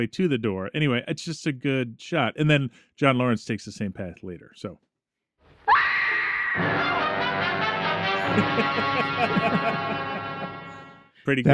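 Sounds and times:
speech: 0.0 - 4.9, 6.6 - 7.0, 8.4 - 10.0, 11.2 - 11.5
horror film scream: 5.7 - 6.6
laughter: 8.2 - 10.9.

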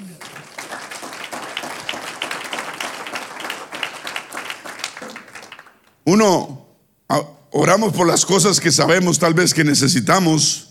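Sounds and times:
audience applause: 0.0 - 6.0
speech: 6.1 - 10.6.

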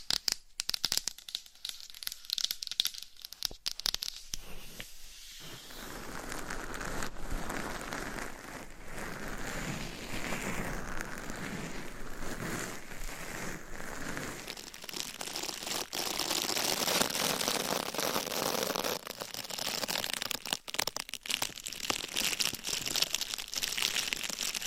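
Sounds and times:
sharp taps and crackles: 0.0 - 4.4
scratching and crinkly rubbing: 3.2 - 24.6.

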